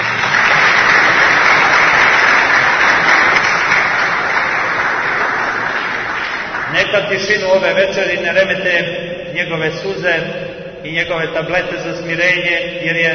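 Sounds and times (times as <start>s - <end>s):
audience applause in Toronto's Church of the Resurrection: 0.0s - 7.3s
speech: 6.9s - 13.1s.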